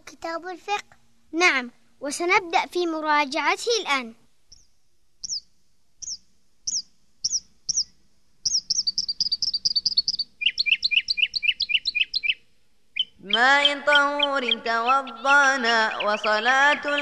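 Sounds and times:
speech: 0:00.2 - 0:04.2, 0:13.3 - 0:17.0
bird chirping: 0:04.5 - 0:17.0.

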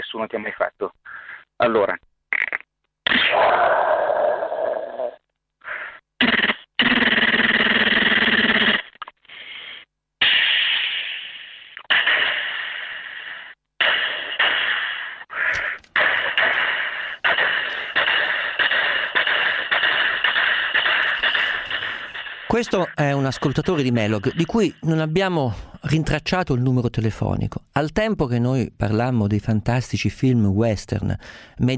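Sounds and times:
speech: 0:00.1 - 0:02.1, 0:22.6 - 0:31.7
person imitating a pistol, a machine gun and a train with mouth noises: 0:02.4 - 0:09.1, 0:10.2 - 0:24.9.

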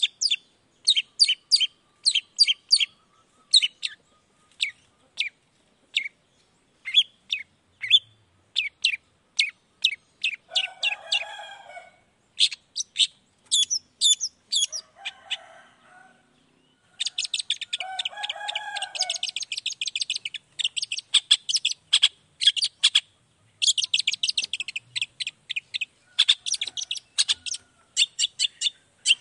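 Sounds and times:
long-tailed shrike chattering song: 0:00.0 - 0:15.4, 0:16.4 - 0:29.1.

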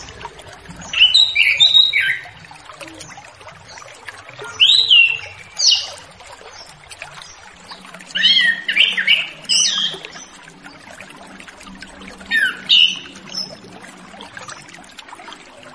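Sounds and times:
orange-headed thrush singing: 0:00.9 - 0:02.3, 0:04.6 - 0:05.9, 0:08.2 - 0:10.0, 0:12.3 - 0:13.1.

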